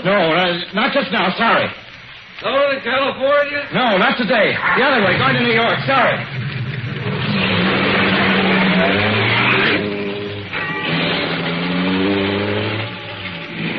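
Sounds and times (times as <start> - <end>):
speech: 0.1 - 1.9, 2.4 - 6.4
car engine accelerating back onto road: 5.7 - 13.7.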